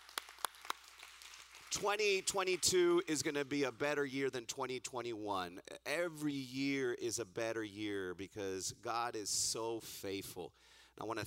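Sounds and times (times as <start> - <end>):
sparse hand claps: 0.0 - 3.5
speech: 1.7 - 11.2.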